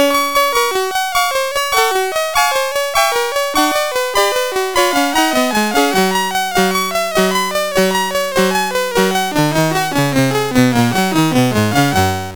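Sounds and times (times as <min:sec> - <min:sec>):
gigue in G major on CSG8580: 0:00.0 - 0:12.3.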